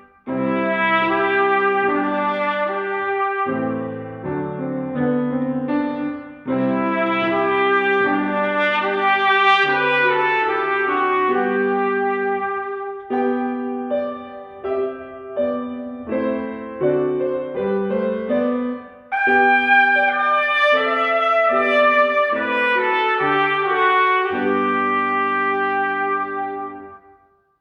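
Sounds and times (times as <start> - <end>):
trumpet: 0.0 - 4.6, 5.9 - 17.6, 18.6 - 27.5
piano: 0.0 - 27.5.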